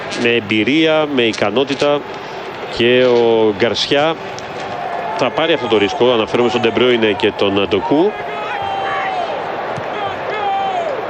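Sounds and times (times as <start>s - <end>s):
crowd noise: 0.0s - 11.0s
speech: 0.1s - 4.4s, 5.2s - 8.4s
raised voices shouting from a team bench: 4.5s - 11.0s.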